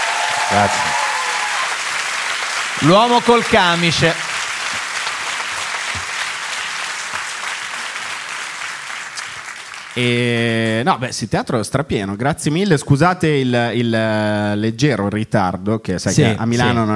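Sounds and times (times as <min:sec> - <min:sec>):
theatre audience applause: 0:00.0 - 0:10.5
speech: 0:00.5 - 0:01.0, 0:02.8 - 0:04.2, 0:10.0 - 0:16.9.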